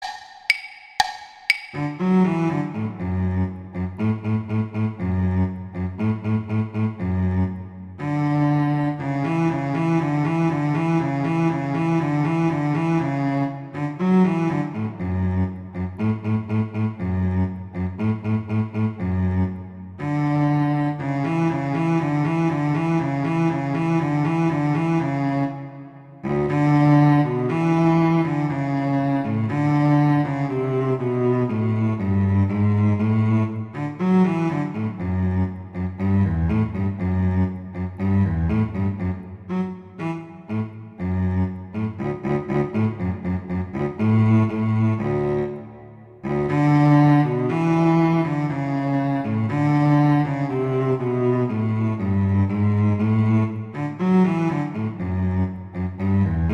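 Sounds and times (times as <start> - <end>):
cello: 1.8 - 56.5.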